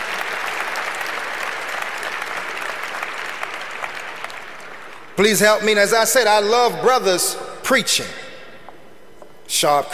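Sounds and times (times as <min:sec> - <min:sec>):
audience round of applause: 0:00.0 - 0:05.2
speech: 0:05.2 - 0:08.2, 0:09.5 - 0:09.9.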